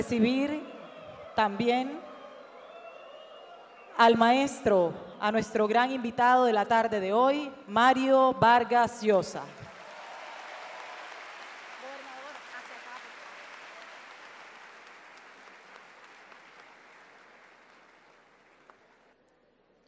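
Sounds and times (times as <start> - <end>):
speech: 0.0 - 0.8, 1.4 - 2.1, 4.0 - 9.6
audience applause: 2.0 - 3.9, 9.7 - 19.2.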